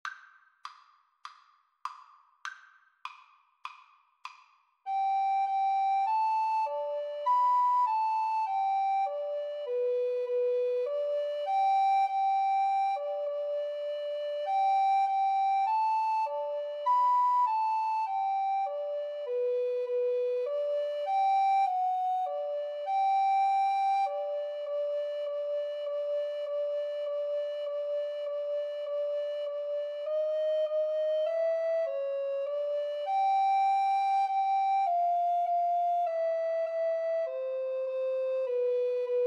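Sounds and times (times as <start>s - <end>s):
recorder duet: 4.9s - 39.2s.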